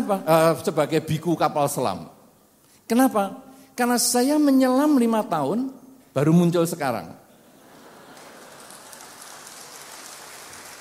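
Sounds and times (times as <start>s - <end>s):
speech: 0.1s - 2.2s, 2.9s - 7.2s
audience clapping: 7.9s - 10.7s.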